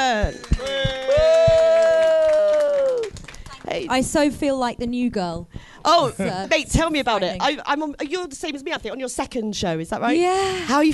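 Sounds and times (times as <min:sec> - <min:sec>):
studio audience cheering and applauding as a guest is welcomed: 0:00.0 - 0:03.8
speech: 0:00.1 - 0:00.6, 0:03.8 - 0:10.9
long sustained whoop from studio audience: 0:00.6 - 0:03.1.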